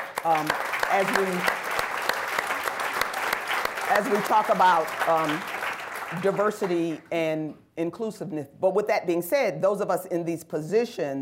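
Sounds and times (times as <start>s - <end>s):
audience applause at a panel event on Black giving and racial equity: 0.0s - 7.0s
speech: 0.2s - 1.6s, 3.9s - 5.5s, 6.1s - 11.2s.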